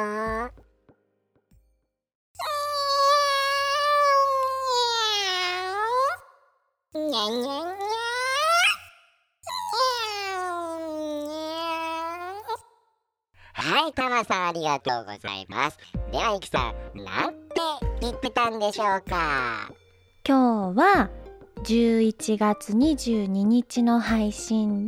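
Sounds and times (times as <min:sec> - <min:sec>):
person imitating cat meows: 0:00.0 - 0:00.6, 0:02.4 - 0:06.2, 0:07.0 - 0:08.9, 0:09.5 - 0:12.6
speech: 0:14.2 - 0:24.8.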